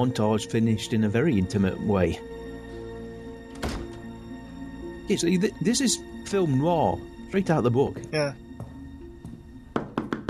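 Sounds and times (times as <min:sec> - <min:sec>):
speech: 0:00.0 - 0:02.4, 0:05.1 - 0:08.4
knocking on an apartment door: 0:09.8 - 0:10.2.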